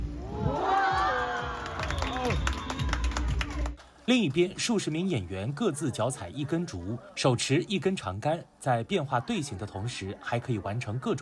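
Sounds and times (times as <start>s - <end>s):
audience cheering: 0.2s - 3.8s
speech: 4.1s - 11.2s.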